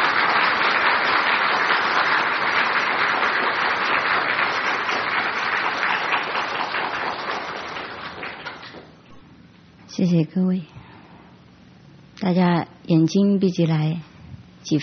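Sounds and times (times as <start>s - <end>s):
audience applause: 0.0s - 9.0s
speech: 10.0s - 10.7s, 12.2s - 14.8s.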